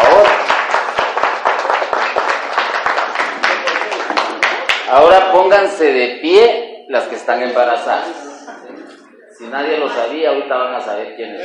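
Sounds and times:
audience applause: 0:00.0 - 0:05.0
speech: 0:05.4 - 0:08.6, 0:09.4 - 0:11.4.

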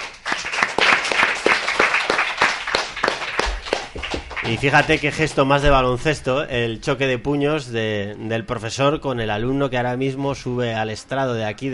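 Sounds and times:
audience applause: 0:00.0 - 0:05.4
speech: 0:04.5 - 0:11.7.

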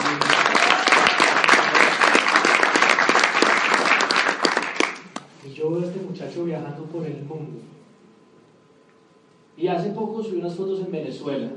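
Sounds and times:
audience applause: 0:00.0 - 0:05.2
speech: 0:09.6 - 0:11.5.

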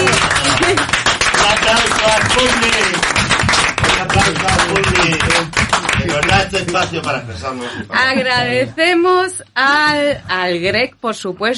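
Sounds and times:
applause for the sound technicians: 0:00.0 - 0:07.2
speech: 0:06.9 - 0:11.5.

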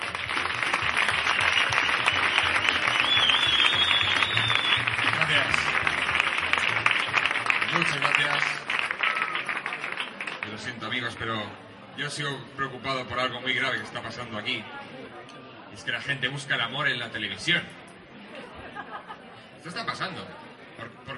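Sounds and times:
audience applause for a comedian: 0:00.0 - 0:10.7
speech: 0:11.0 - 0:15.1, 0:15.8 - 0:17.8, 0:19.6 - 0:21.0
laughter: 0:18.1 - 0:19.6.

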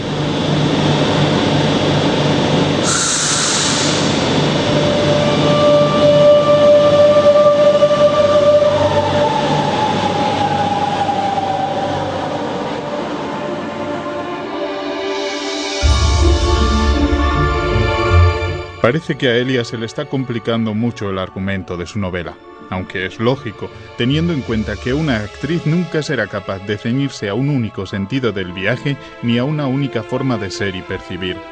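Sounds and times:
metro train arriving, drama sound effect: 0:00.0 - 0:21.4, 0:22.0 - 0:31.5
speech: 0:18.9 - 0:31.5.

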